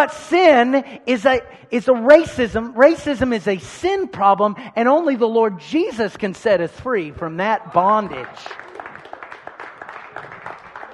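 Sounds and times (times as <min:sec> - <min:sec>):
speech: 0:00.0 - 0:08.6
church audience clapping: 0:07.7 - 0:10.9.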